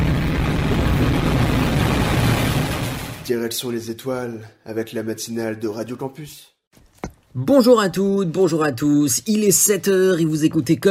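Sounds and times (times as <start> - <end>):
rocket or aircraft takeoff sound effect: 0.0 - 3.2
speech: 3.3 - 6.5, 7.4 - 10.8.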